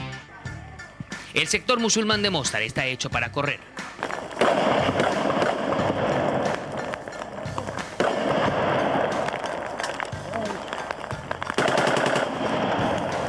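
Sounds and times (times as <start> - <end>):
rushing noise: 0.3 - 13.2
speech: 1.4 - 3.8
sniper gunfire in a war zone: 4.0 - 13.2.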